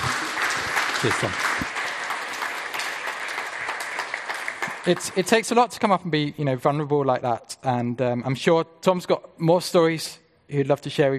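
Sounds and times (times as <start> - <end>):
audience applause: 0.0 - 5.5
speech: 1.0 - 1.7, 4.8 - 11.1.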